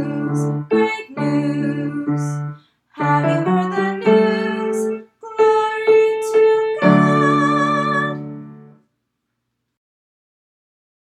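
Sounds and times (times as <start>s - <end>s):
shepherd's song: 0.0s - 8.8s.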